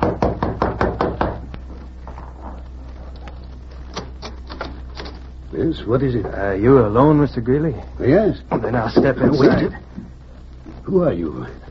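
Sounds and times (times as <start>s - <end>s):
knocking on a hotel room door: 0.0s - 1.4s
speech: 5.6s - 10.0s, 10.9s - 11.6s.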